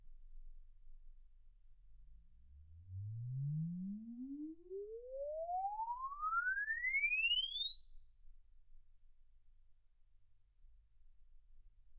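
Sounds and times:
exponential sine sweep from 10 Hz to 24 kHz: 2.6s - 9.9s.

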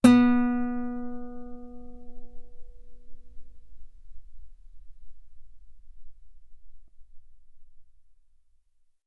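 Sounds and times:
loud guitar note on the B string: 0.0s - 4.6s.

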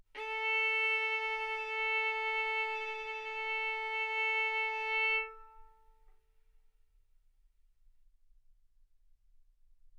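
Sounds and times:
violin bowed mezzo-forte on the A string, A4 and B4: 0.2s - 6.0s.

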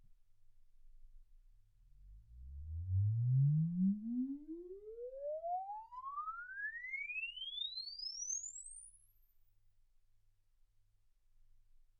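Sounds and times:
exponential sine sweep from 10 Hz to 24 kHz: 2.4s - 9.2s.

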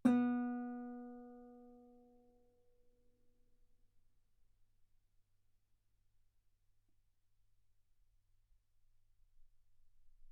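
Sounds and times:
guitar note B3: 0.0s - 1.6s.

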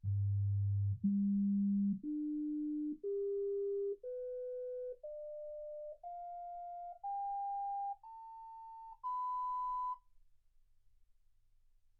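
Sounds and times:
sine tones: 0.0s - 10.0s.

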